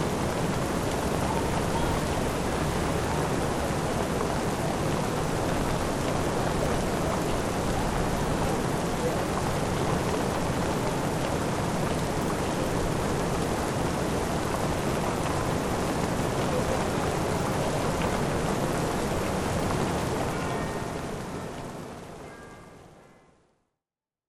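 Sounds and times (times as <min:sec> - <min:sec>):
rain in Victorian London: 0:00.0 - 0:23.7.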